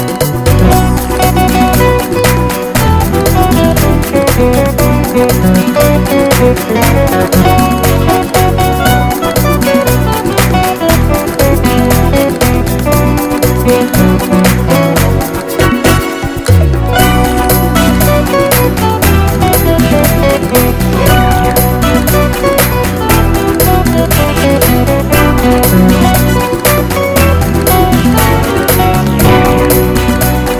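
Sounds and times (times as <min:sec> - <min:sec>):
paso doble dance music: 0:00.0 - 0:30.5.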